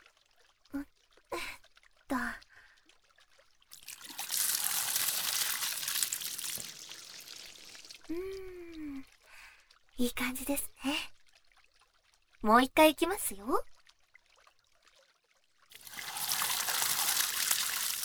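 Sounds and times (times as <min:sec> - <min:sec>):
water pouring to rinse something clean: 0:03.7 - 0:09.6, 0:15.7 - 0:18.0
speech: 0:10.0 - 0:11.0, 0:12.4 - 0:13.7.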